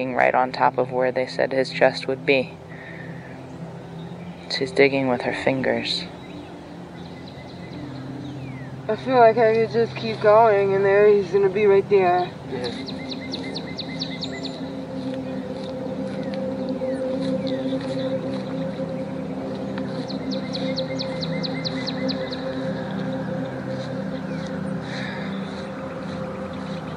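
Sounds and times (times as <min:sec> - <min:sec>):
speech: 0:00.0 - 0:02.6, 0:04.5 - 0:06.2, 0:08.9 - 0:13.1
birds chirping outdoors: 0:00.0 - 0:26.9.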